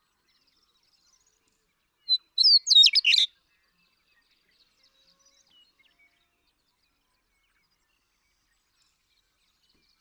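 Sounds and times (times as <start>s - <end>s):
western meadowlark singing: 2.1s - 3.3s.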